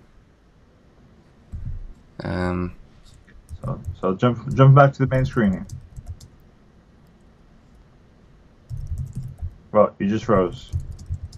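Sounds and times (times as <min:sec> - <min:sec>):
speech: 0:02.2 - 0:02.8, 0:03.6 - 0:05.8, 0:10.1 - 0:10.9
computer keyboard typing: 0:03.1 - 0:06.4, 0:08.7 - 0:09.6, 0:10.3 - 0:11.3.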